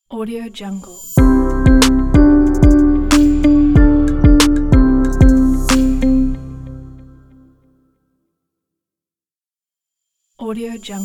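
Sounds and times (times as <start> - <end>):
corporate logo reveal sound: 1.2 - 7.2.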